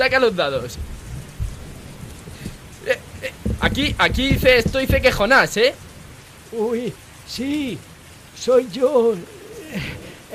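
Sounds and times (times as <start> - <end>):
speech: 0.0 - 1.0, 3.6 - 5.9, 6.5 - 10.3
rain in a thunderstorm: 0.0 - 10.3
thunder in a thunderstorm: 0.7 - 6.3.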